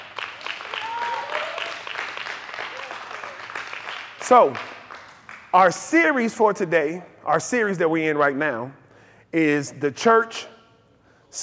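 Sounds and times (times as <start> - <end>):
audience clapping hands: 0.0 - 5.6
speech: 4.3 - 4.8, 5.5 - 10.5.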